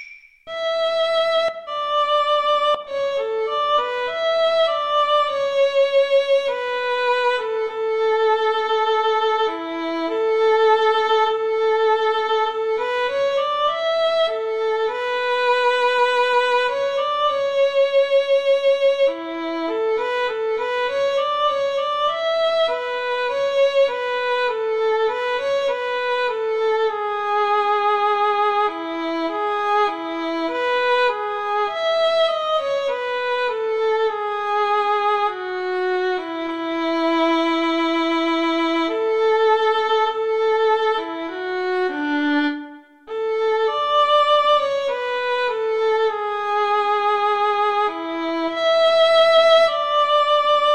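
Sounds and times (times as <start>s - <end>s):
violin and cello duet: 0.5s - 50.7s.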